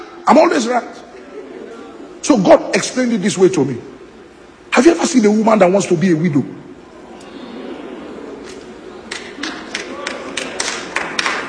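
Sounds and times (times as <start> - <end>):
low murmur: 0.0 - 2.3, 6.5 - 11.4
speech: 0.3 - 1.0, 2.2 - 4.0, 4.8 - 6.6
audience clapping: 9.1 - 11.4.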